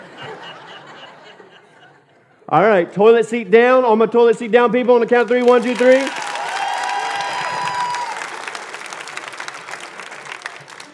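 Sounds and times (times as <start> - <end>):
laughter: 0.0 - 2.4
speech: 2.5 - 6.2
crowd applause: 5.0 - 10.9
whoops and cheers: 6.0 - 8.6.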